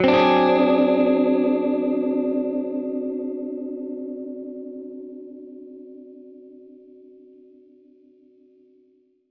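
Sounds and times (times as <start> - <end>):
Gretsch guitar D7b5 chord: 0.0 - 5.5.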